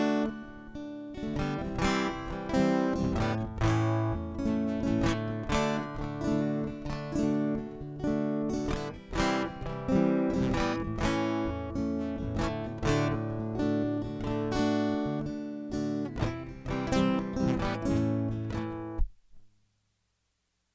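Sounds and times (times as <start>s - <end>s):
guitar being flipped: 0.0s - 19.5s.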